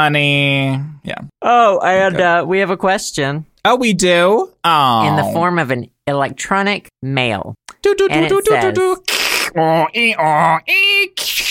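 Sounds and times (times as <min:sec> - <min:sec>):
speech: 0:00.0 - 0:11.4
voice imitating a dial-up modem connecting: 0:05.0 - 0:05.5, 0:08.3 - 0:11.4.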